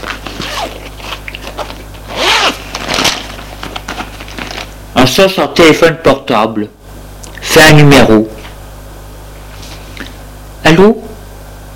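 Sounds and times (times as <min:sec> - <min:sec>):
handbag being unzipped: 0:00.0 - 0:03.3
rustling and fumbling in a handbag: 0:00.0 - 0:04.8
speech: 0:05.0 - 0:06.8, 0:07.6 - 0:08.4, 0:10.8 - 0:11.0.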